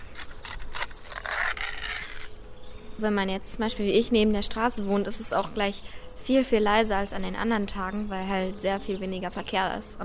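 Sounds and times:
aluminium seal peeling off a spread jar: 0.0s - 2.3s
speech: 3.0s - 10.0s.

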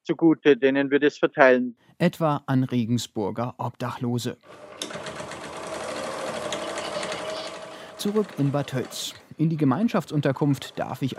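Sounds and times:
speech: 0.0s - 5.2s, 8.0s - 11.1s
sewing machine sewing fabric masks: 4.4s - 9.2s, 9.8s - 11.1s.

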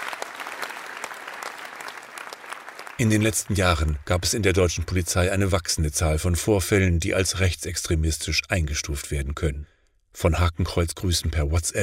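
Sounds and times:
police officers applauding a speech: 0.0s - 4.0s
speech: 3.0s - 11.8s.

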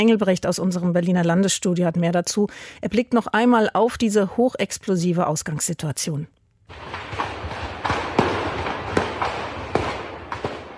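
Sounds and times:
speech: 0.0s - 7.2s
ammunition and fireworks detonating: 6.7s - 10.7s.

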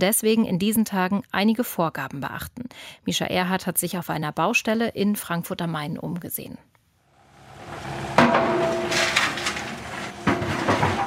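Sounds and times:
speech: 0.0s - 6.7s
excavator bucket digging dry soil: 7.3s - 11.0s.

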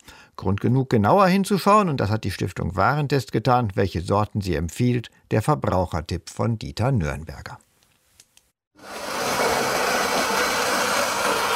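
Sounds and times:
speech: 0.4s - 7.7s
coffee beans being ground in grinder: 8.8s - 11.5s.

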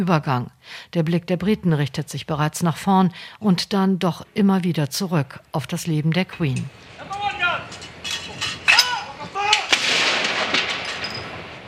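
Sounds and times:
speech: 0.0s - 7.2s
96-gun artillery salute for Elisabeth being fired: 8.6s - 11.6s.

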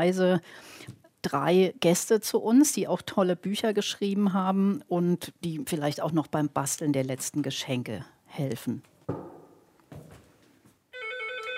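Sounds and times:
speech: 0.0s - 9.3s
doorbell ringing: 11.0s - 11.5s.

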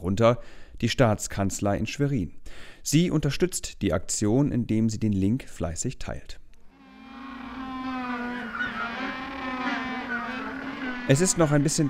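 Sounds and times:
speech: 0.1s - 6.4s, 11.1s - 11.8s
penguins braying: 6.8s - 11.8s.

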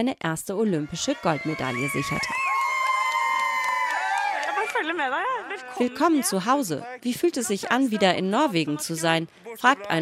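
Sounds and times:
speech: 0.0s - 2.5s, 4.8s - 10.0s
crowd cheering for Norwegian Olympic athletes at Oslo airport: 0.7s - 5.6s.

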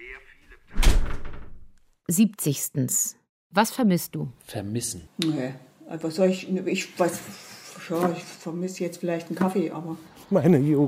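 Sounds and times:
door shutting: 0.7s - 1.8s
speech: 2.1s - 10.8s.

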